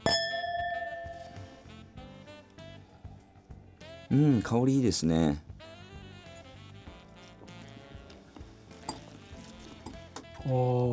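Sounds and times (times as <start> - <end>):
wine glasses clinking in a toast: 0.0 - 1.7, 8.7 - 9.2
speech: 4.1 - 5.5, 10.5 - 10.9.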